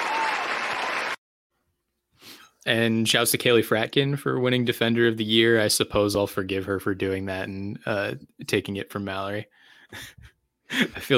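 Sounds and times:
audience applause: 0:00.0 - 0:01.2
speech: 0:02.6 - 0:11.1.

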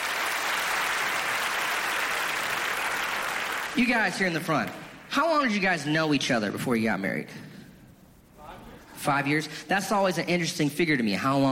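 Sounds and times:
audience clapping: 0:00.0 - 0:05.1
speech: 0:03.8 - 0:07.5, 0:09.0 - 0:11.5.

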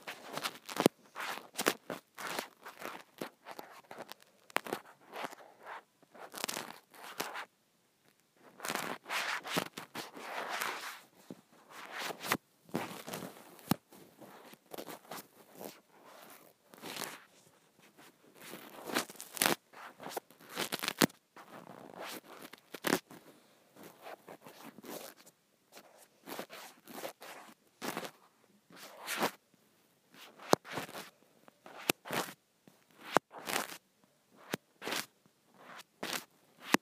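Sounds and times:
scrunchie crinkly scratchy rustling: 0:00.0 - 0:07.5, 0:08.4 - 0:23.2, 0:23.8 - 0:29.4, 0:30.2 - 0:33.8, 0:34.4 - 0:36.8.

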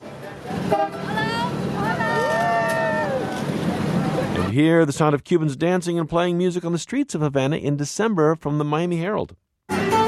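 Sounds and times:
old convertible driving through historic Havana: 0:00.0 - 0:04.8
speech: 0:04.6 - 0:10.0.

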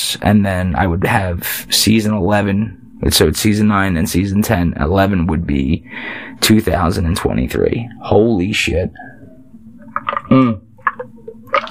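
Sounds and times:
speech: 0:00.1 - 0:09.2, 0:10.3 - 0:11.1
person sipping iced tea: 0:09.8 - 0:11.6.

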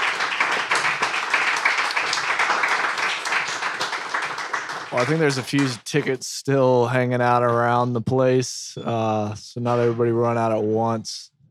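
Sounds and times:
audience applause: 0:00.0 - 0:06.1
speech: 0:04.9 - 0:11.3.

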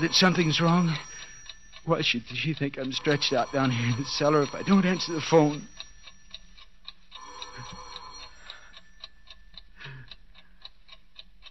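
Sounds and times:
speech: 0:00.0 - 0:01.1, 0:01.8 - 0:05.7
clock ticking: 0:00.0 - 0:11.4.

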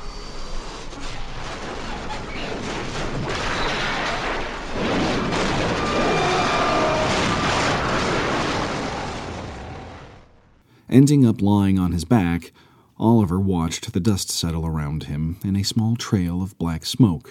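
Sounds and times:
plane crashing into the ground: 0:00.4 - 0:10.6
speech: 0:10.9 - 0:17.2.

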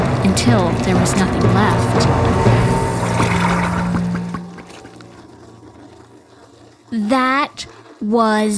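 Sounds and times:
water draining down a kitchen sink: 0:00.0 - 0:06.4
garbage disposal motor hum: 0:00.0 - 0:07.0
speech: 0:00.3 - 0:02.6, 0:06.9 - 0:08.5.

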